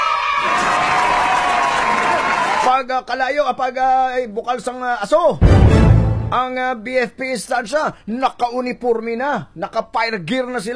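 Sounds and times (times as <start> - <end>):
crowd applause for a fire-protection station crew: 0.2 - 2.6
speech: 2.6 - 10.7.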